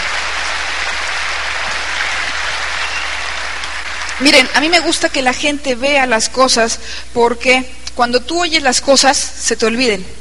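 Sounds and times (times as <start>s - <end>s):
loud audience applause: 0.0s - 4.6s
speech: 4.2s - 10.1s.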